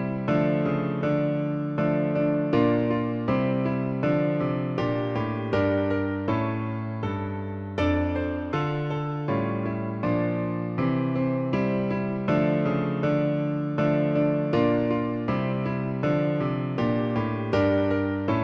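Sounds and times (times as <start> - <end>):
piano version of a piece: 0.0 - 18.4.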